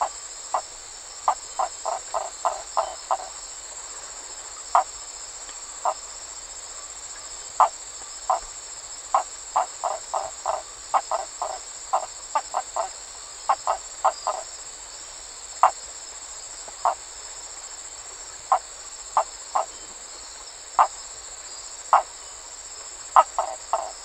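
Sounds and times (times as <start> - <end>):
map tree frog calling: 0.0 - 3.4, 4.6 - 5.0, 5.7 - 6.1, 7.1 - 14.6, 15.6 - 15.8, 16.6 - 17.1, 18.3 - 20.1, 20.8 - 21.0, 21.9 - 22.4, 23.0 - 24.0
high insect hum: 0.0 - 24.0.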